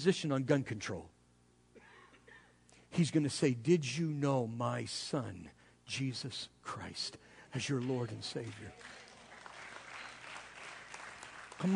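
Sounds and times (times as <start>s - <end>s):
speech: 0.0s - 1.2s, 2.9s - 9.0s, 11.6s - 11.7s
weak clapping: 7.8s - 11.7s.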